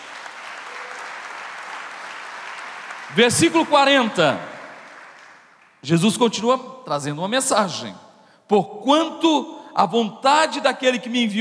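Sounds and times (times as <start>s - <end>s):
audience applause: 0.0s - 5.8s
speech: 3.1s - 4.5s, 5.8s - 11.3s.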